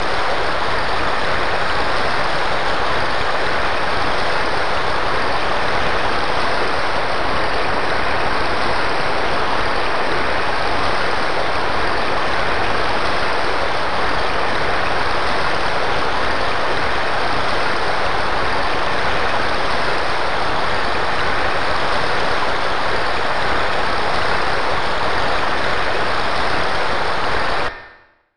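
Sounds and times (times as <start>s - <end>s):
rain: 0.0s - 27.7s.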